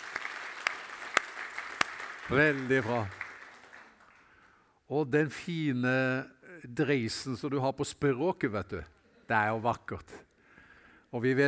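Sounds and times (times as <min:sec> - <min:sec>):
thin scattered audience applause: 0:00.0 - 0:04.5
speech: 0:02.3 - 0:03.2, 0:04.9 - 0:10.3, 0:11.1 - 0:11.4.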